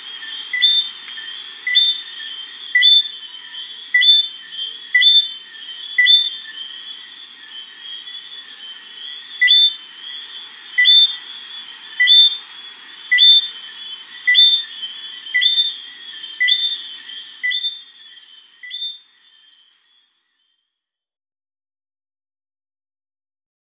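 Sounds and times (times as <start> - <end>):
Eleutherodactylus johnstonei frog: 0.0 - 20.8.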